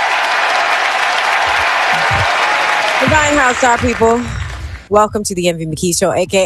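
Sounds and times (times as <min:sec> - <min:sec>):
studio applause at the opening of a talk show: 0:00.0 - 0:04.9
speech: 0:03.0 - 0:06.4.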